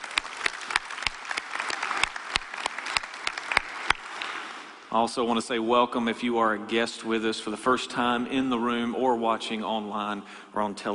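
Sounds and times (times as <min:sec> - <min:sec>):
audience applause in a church service room: 0:00.0 - 0:04.8
speech: 0:04.9 - 0:10.9.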